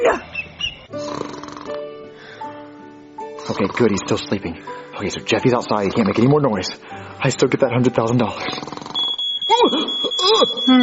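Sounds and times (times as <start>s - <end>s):
speech: 3.5s - 8.7s, 10.6s - 10.8s
fire alarm going off: 9.0s - 10.8s.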